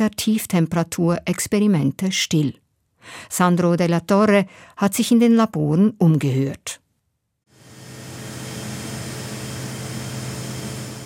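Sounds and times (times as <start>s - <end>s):
speech: 0.0s - 6.8s
helium liquefaction plant humming and hissing: 7.6s - 11.0s.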